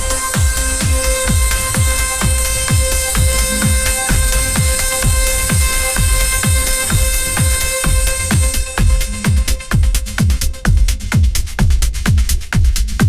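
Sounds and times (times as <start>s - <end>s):
electronic dance music ringtone: 0.0s - 12.2s.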